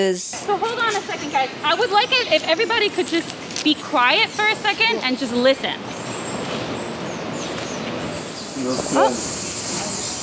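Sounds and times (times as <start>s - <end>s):
speech: 0.0s - 6.6s, 8.7s - 9.4s
cicada buzzing: 0.4s - 10.2s.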